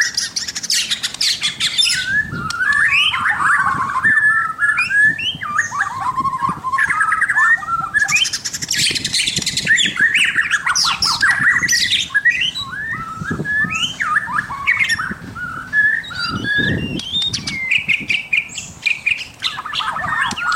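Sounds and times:
White-rumped shama pouring out quick chattering and whistled phrases: 0.0s - 20.5s.

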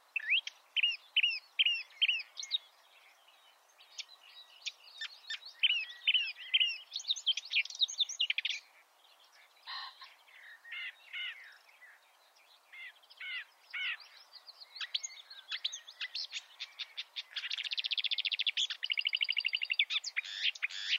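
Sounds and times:
marsh warbler song: 0.0s - 20.9s.

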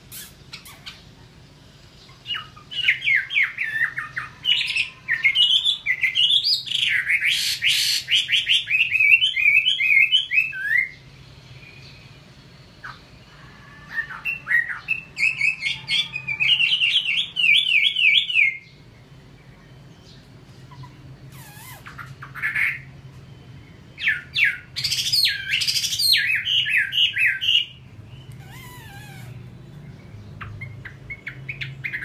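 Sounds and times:
Chinese hwamei song of slurred whistled notes: 2.1s - 32.0s.

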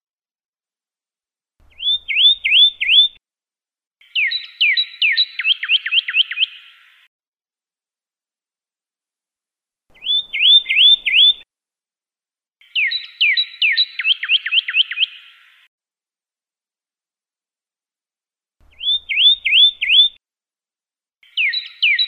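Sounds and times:
Pyrrhuloxia song with downslurred whistles and rapid trill: 1.7s - 3.2s, 4.0s - 6.9s, 10.0s - 11.4s, 12.6s - 15.5s, 18.7s - 20.2s, 21.2s - 22.0s.

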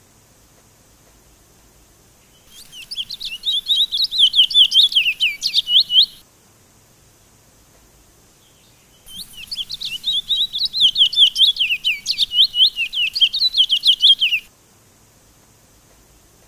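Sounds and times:
Sunda laughingthrush song of quick high-pitched slurred chirps: 2.5s - 6.2s, 9.1s - 14.5s.

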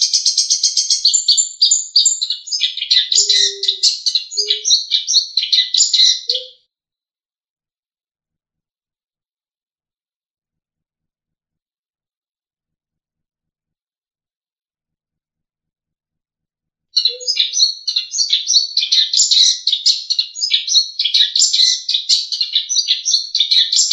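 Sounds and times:
long-tailed shrike trilling: 0.7s - 6.6s, 17.0s - 23.9s.

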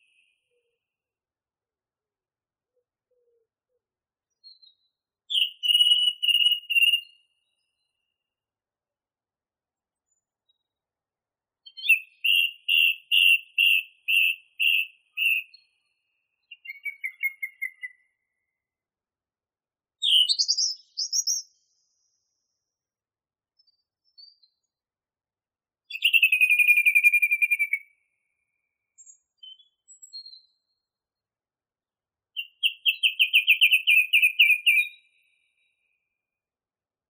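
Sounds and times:
song thrush song: 0.0s - 0.8s, 4.3s - 8.1s, 11.6s - 18.5s, 20.0s - 22.3s, 23.6s - 24.7s, 25.9s - 30.9s, 32.4s - 36.0s.

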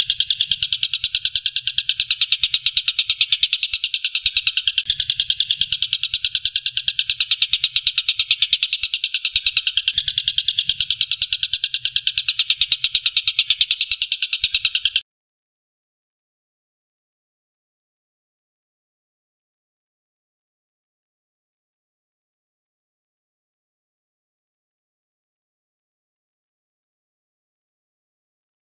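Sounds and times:
Stork-billed kingfisher rattling: 0.0s - 15.0s.

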